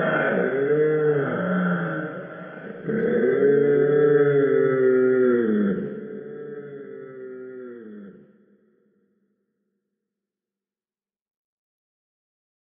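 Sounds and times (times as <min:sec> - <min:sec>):
spooky ghost moaning: 0:00.0 - 0:08.4.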